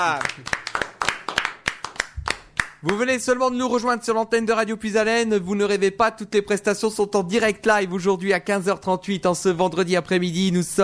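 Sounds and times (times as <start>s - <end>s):
speech: 0.0s - 0.6s, 2.8s - 10.8s
small group clapping: 0.0s - 3.2s.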